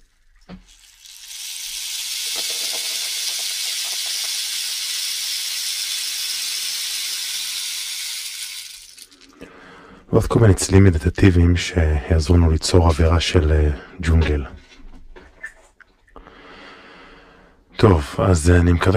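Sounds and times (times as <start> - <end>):
rain stick cascade: 0.0 - 9.4
speech: 10.1 - 14.6, 17.8 - 18.9.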